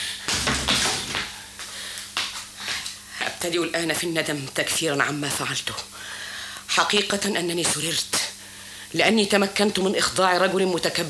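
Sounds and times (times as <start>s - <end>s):
door being closed: 0.3s - 1.3s
speech: 3.4s - 6.2s, 6.8s - 8.3s, 8.9s - 11.0s.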